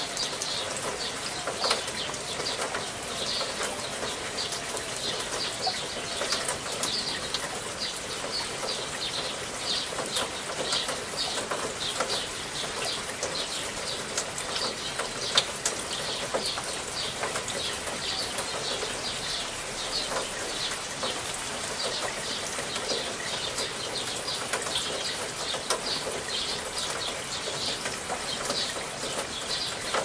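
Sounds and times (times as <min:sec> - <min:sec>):
rain trickling: 0:00.0 - 0:30.0.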